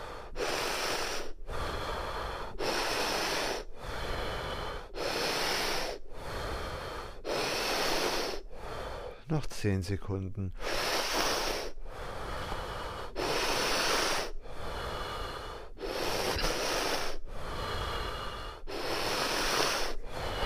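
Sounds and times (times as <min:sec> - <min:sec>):
deep hissing breaths during a breathing exercise: 0:00.0 - 0:20.4
speech: 0:09.3 - 0:10.6.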